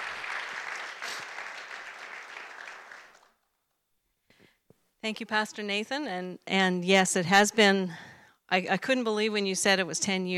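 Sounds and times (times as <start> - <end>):
Evangel Assembly church congregation applauding to welcome guest speakers: 0.0 - 3.4
speech: 5.0 - 10.3.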